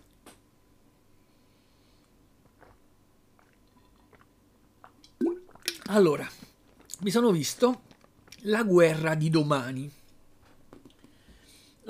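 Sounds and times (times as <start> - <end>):
person swallowing a sip of water: 2.5 - 7.0
speech: 5.9 - 6.4, 7.0 - 7.8, 8.4 - 10.0.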